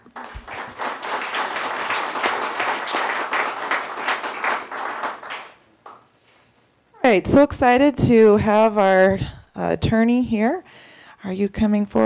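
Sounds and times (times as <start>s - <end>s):
audience applause: 0.0s - 6.0s
speech: 7.1s - 12.0s.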